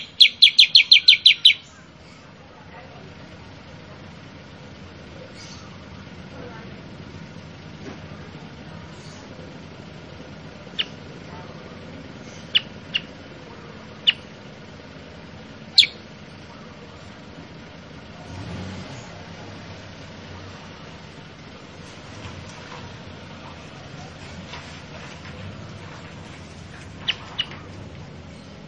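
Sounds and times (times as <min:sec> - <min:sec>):
Sooty-headed bulbul calls: 0:00.0 - 0:02.2, 0:05.3 - 0:05.8, 0:10.6 - 0:14.4, 0:15.6 - 0:16.1, 0:26.9 - 0:27.7.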